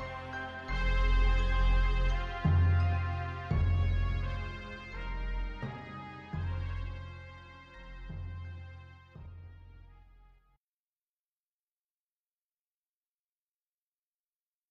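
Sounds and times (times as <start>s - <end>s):
thunderous drums: 0.9s - 9.5s.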